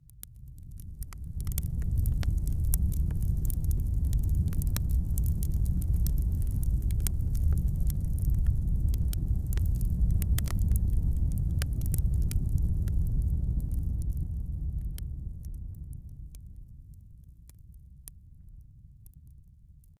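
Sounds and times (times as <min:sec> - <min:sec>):
natural crackling: 0:00.2 - 0:15.9.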